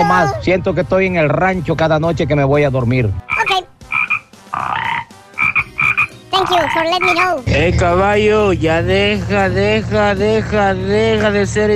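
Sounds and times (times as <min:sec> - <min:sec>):
speech: 0:00.1 - 0:03.3, 0:06.5 - 0:11.7
frogs croaking in a chorus: 0:03.3 - 0:07.3.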